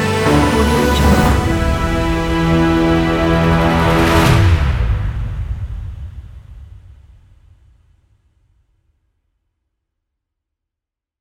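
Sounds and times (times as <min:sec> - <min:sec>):
epic Chinese-style music: 0:00.0 - 0:05.9.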